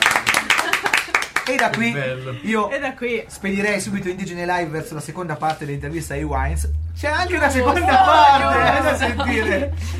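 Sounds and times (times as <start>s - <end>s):
audience applause: 0.0s - 1.9s
laughter: 0.2s - 1.4s, 7.5s - 9.9s
speech: 1.5s - 9.9s.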